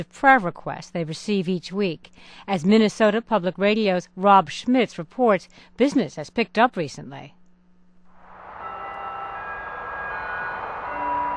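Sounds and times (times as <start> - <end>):
speech: 0.0 - 7.4
chapel bell ringing: 8.4 - 11.3.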